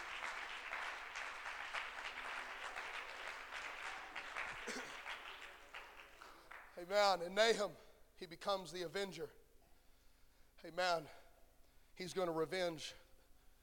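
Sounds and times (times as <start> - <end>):
audience clapping hands: 0.0 - 7.1
speech: 6.8 - 9.4, 10.6 - 11.2, 12.0 - 13.0.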